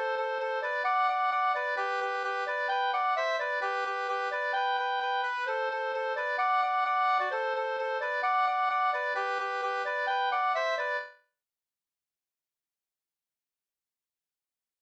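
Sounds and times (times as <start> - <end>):
Czech polka in G major: 0.0 - 11.1.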